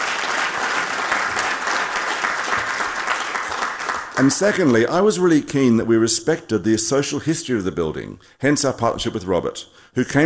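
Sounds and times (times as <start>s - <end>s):
audience applause: 0.0s - 4.8s
speech: 4.2s - 10.2s.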